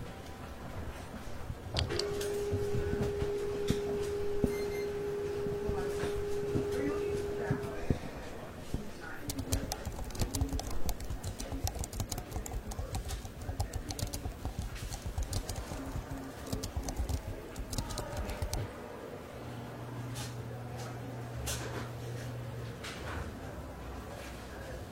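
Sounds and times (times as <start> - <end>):
library low murmur: 0.0 - 24.9
sustained mid tone hum: 1.3 - 21.2
typing clicks in library: 9.2 - 18.7.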